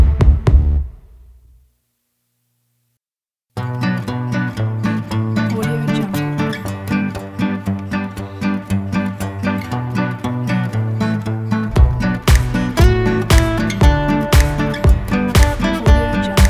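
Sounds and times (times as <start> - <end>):
indie folk music: 3.6 - 16.4.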